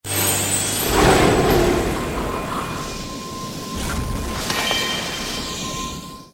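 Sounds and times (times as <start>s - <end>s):
chime: 0.0s - 6.3s.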